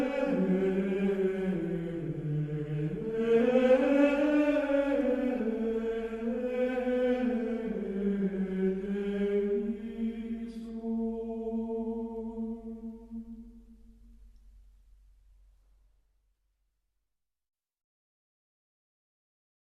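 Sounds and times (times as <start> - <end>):
gregorian chant: 0.0 - 14.1.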